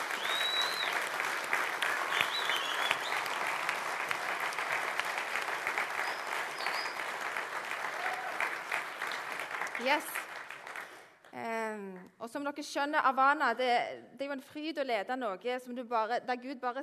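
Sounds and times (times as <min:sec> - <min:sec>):
audience applause: 0:00.0 - 0:11.2
speech: 0:09.8 - 0:10.3, 0:11.4 - 0:16.8.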